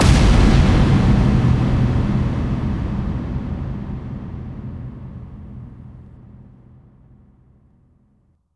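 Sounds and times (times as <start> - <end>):
bass drum FX kicks: 0.0 - 6.7.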